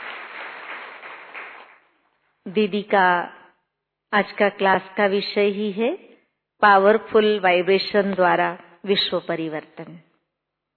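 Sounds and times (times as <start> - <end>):
audience applauding to welcome a guest speaker from Nairobi: 0.0 - 1.9
speech: 2.4 - 3.4, 4.1 - 10.1.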